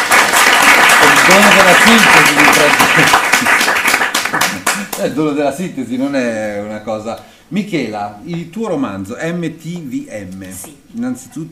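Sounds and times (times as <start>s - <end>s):
audience applause: 0.0s - 5.0s
speech: 1.3s - 3.7s, 4.8s - 11.5s.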